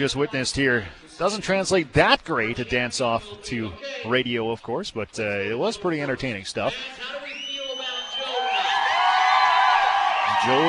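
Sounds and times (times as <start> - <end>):
speech: 0.0 - 7.3, 10.4 - 10.6
audience cheering with whoops and shouts: 7.2 - 10.6
audience clapping: 8.2 - 10.6.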